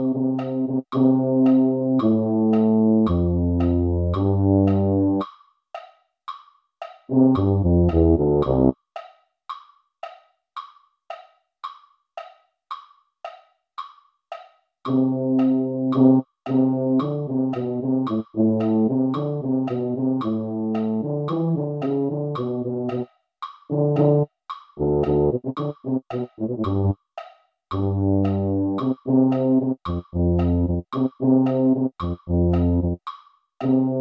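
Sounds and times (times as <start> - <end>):
tuba: 0.0 - 5.2, 7.1 - 8.8, 14.9 - 23.0, 23.7 - 27.0, 27.7 - 33.0, 33.6 - 33.9.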